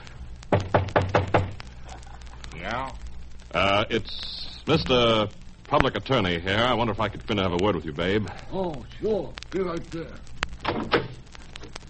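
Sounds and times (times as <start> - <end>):
knocking on a door: 0.5 - 1.6
speech: 2.7 - 11.0.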